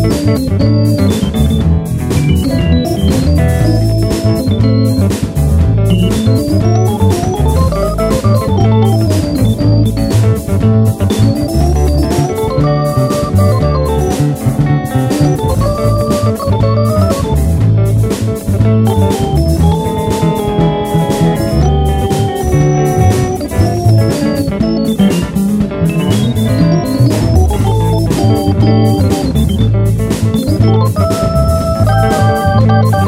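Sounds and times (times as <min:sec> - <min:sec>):
blues keyboard solo in A at 120 BPM: 0:00.0 - 0:33.0.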